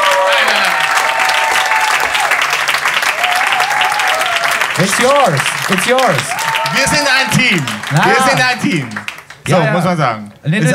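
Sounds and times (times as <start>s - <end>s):
applause: 0.0s - 9.6s
speech: 4.8s - 10.7s.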